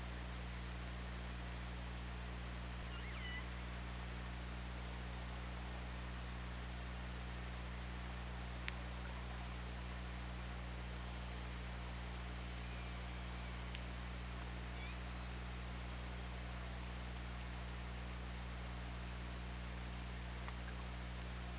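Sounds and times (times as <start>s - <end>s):
low mechanical humming: 0.0s - 21.5s
orca call squeal: 2.8s - 3.5s, 14.7s - 15.0s.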